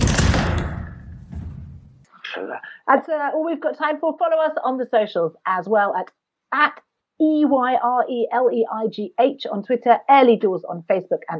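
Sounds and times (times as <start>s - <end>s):
door closing: 0.0s - 2.1s
speech: 2.4s - 11.3s.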